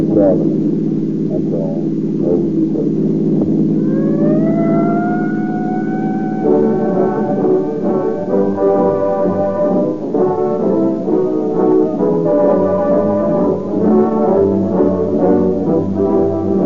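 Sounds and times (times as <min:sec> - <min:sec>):
speech: 0:00.0 - 0:03.3
police car sirens screaming: 0:03.8 - 0:16.6.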